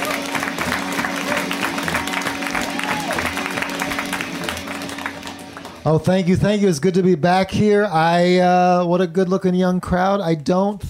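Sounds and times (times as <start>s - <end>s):
crowd applauding for comedian: 0.0s - 6.3s
speech: 5.8s - 10.8s.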